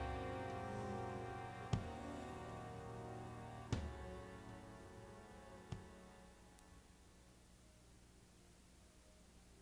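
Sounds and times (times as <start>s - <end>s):
dirge in F-sharp minor: 0.0s - 7.1s.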